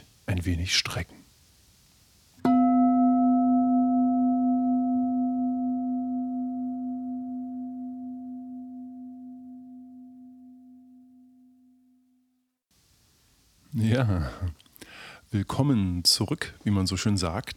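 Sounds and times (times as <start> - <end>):
speech: 0.3 - 1.2, 14.0 - 14.6, 15.3 - 17.5
gong: 2.5 - 11.5.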